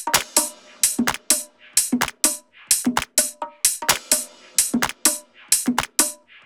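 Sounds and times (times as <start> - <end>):
128 BPM music loop: 0.2 - 1.4, 2.9 - 3.1, 3.9 - 6.0.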